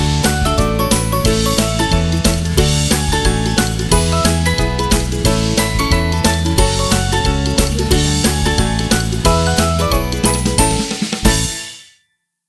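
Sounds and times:
happy ukulele: 0:00.0 - 0:11.6.

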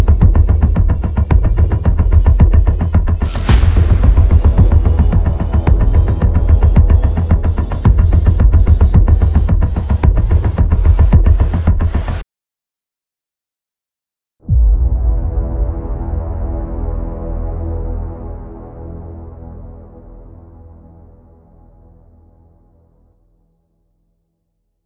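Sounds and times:
action trailer music: 0:00.0 - 0:12.2, 0:14.5 - 0:22.2.

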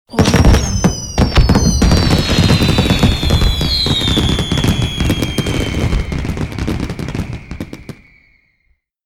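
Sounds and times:
New Year fireworks: 0:00.1 - 0:08.6.

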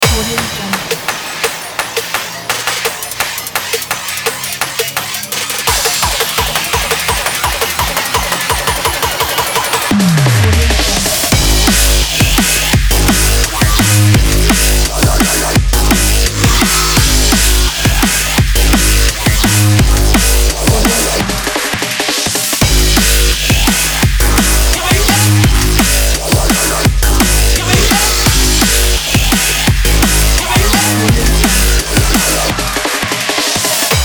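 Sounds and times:
drum and bass music: 0:00.0 - 0:34.0.

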